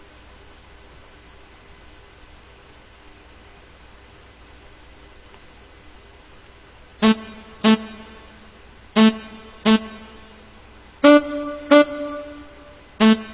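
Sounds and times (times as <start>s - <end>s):
dry saxophone without reverb: 7.0s - 13.3s.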